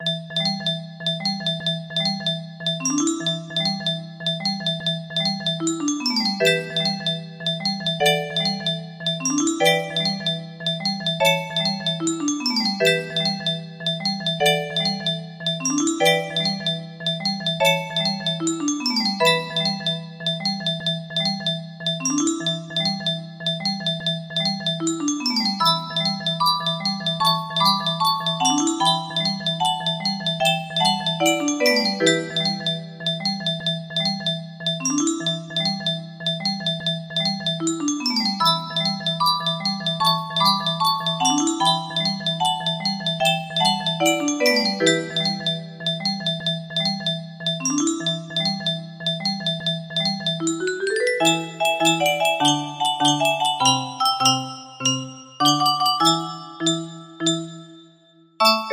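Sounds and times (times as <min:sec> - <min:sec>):
music box melody: 0:00.0 - 0:58.7.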